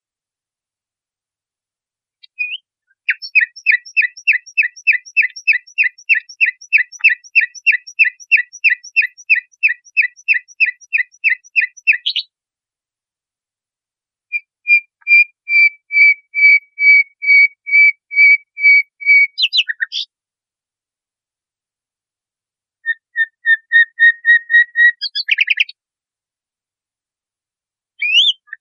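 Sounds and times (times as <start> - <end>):
nightingale song: 2.2 - 12.3, 14.3 - 20.1, 22.8 - 25.8, 28.0 - 28.5.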